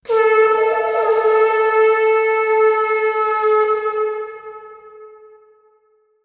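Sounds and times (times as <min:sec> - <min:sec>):
horn: 0:00.0 - 0:05.5.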